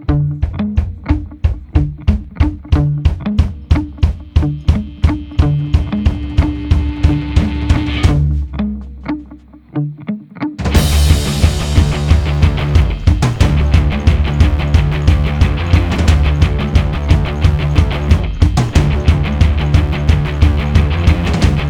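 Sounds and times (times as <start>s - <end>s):
instrumental music: 0.1s - 21.6s.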